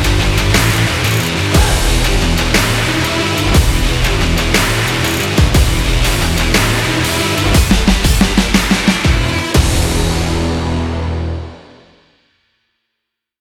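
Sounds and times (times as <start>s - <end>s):
energetic sport rock music: 0.0s - 11.8s.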